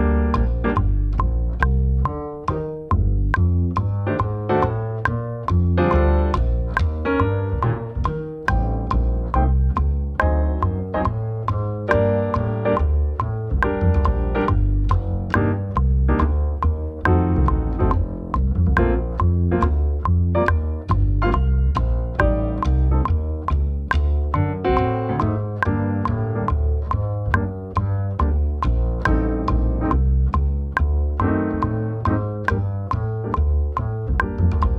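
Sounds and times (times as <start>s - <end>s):
prepared jazz drum set: 0.0s - 34.7s.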